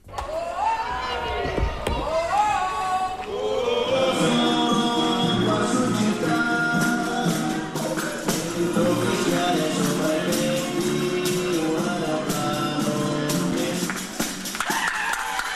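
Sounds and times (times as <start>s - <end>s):
loud cheering crowd in the streets: 0.0s - 5.5s, 13.8s - 15.5s
music playing in the streets: 3.4s - 14.7s.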